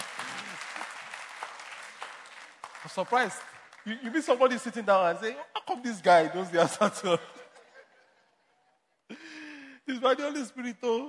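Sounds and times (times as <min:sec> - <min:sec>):
audience clapping: 0:00.0 - 0:05.3
speech: 0:02.8 - 0:07.4, 0:10.1 - 0:11.0
laughter: 0:06.5 - 0:10.0.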